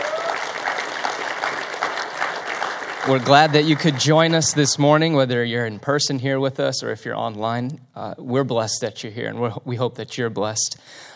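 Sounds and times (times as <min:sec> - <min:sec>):
church congregation applauding first-time visitors: 0:00.0 - 0:04.8
speech: 0:03.1 - 0:11.1.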